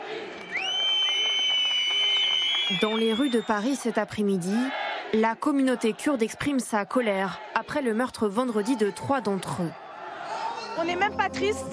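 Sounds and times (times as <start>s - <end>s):
protest crowd whistling in the street: 0.4s - 3.7s
speech: 2.7s - 9.8s, 10.8s - 11.7s.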